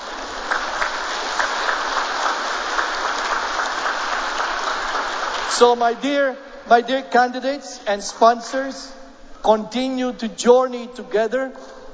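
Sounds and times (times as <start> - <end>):
audience applause: 0.0 - 5.7
speech: 5.5 - 11.8.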